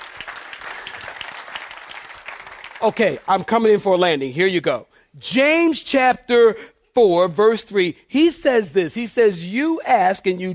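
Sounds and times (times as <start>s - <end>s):
audience clapping hands: 0.0s - 3.9s
speech: 2.8s - 10.5s.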